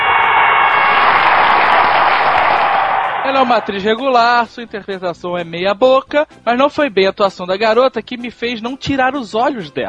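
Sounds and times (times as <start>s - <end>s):
audience applause: 0.0s - 4.1s
speech: 3.4s - 9.8s.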